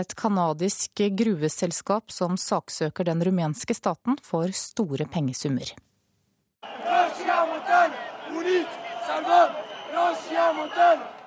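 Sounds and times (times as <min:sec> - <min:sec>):
speech: 0:00.0 - 0:05.9
protest crowd chanting slogans: 0:06.6 - 0:11.2.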